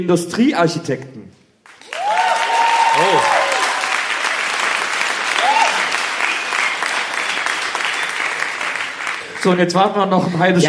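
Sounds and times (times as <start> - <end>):
speech: 0.0 - 1.2, 9.4 - 10.6
audience applause: 1.7 - 9.6.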